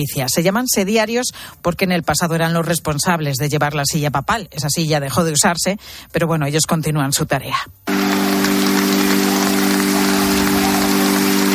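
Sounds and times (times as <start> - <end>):
speech: 0.0 - 8.2
applause at end of ceremony: 7.9 - 11.5.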